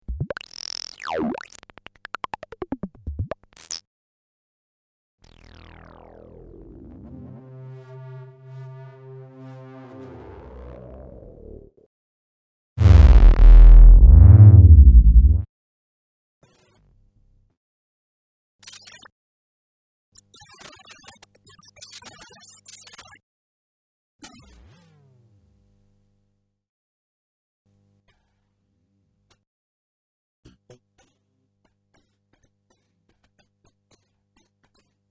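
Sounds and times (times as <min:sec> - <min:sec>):
Kaossilator synthesizer: 0:12.8 - 0:15.5.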